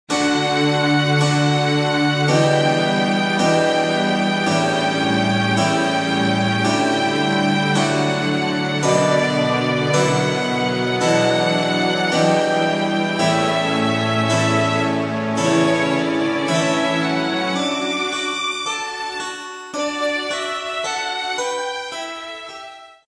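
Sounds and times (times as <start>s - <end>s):
concerto in G major: 0.1s - 22.9s.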